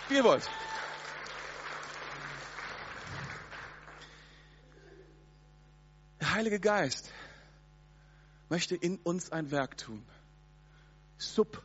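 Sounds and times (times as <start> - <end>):
audience clapping: 0.0 - 4.4
speech: 0.1 - 0.8, 6.4 - 7.2, 8.5 - 10.2, 11.2 - 11.6.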